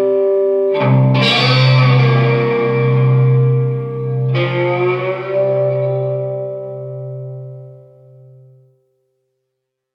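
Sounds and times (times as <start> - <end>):
blues music: 0.7 - 8.4.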